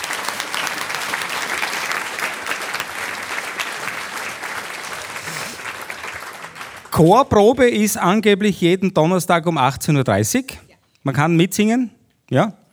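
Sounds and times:
audience applause for a choir: 0.0 - 7.1
speech: 7.0 - 12.6.

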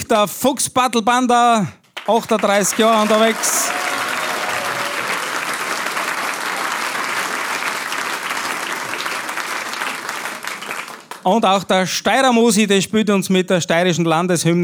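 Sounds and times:
speech: 0.1 - 3.9, 11.2 - 14.6
audience applause: 2.0 - 11.3.

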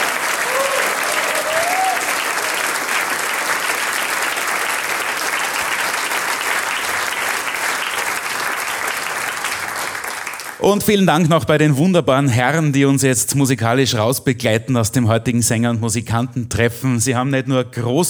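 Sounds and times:
audience applause: 0.0 - 10.6
speech: 10.7 - 18.0.

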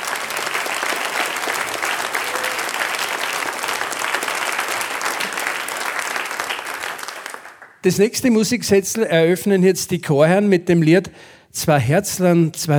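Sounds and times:
audience applause: 0.0 - 7.8
speech: 7.8 - 12.7.

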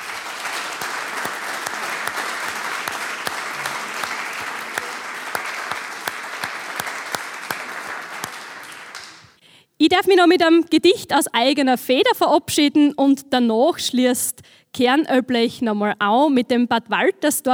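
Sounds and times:
audience applause: 0.0 - 9.3
speech: 9.8 - 17.5.

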